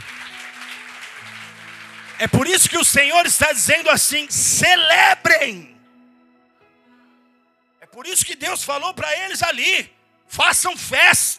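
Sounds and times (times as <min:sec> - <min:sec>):
audience applause: 0:00.0 - 0:04.3
speech: 0:02.2 - 0:05.7, 0:08.0 - 0:11.3.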